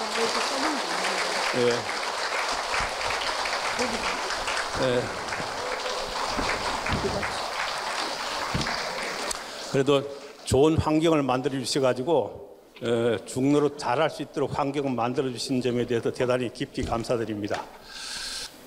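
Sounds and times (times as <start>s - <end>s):
crowd clapping: 0.0s - 10.5s
speech: 1.5s - 2.0s, 3.8s - 5.5s, 7.0s - 7.4s, 9.7s - 18.0s.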